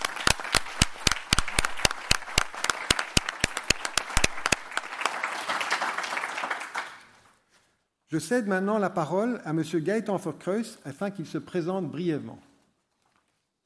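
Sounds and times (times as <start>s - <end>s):
audience applause: 0.0s - 7.2s
speech: 8.1s - 12.5s.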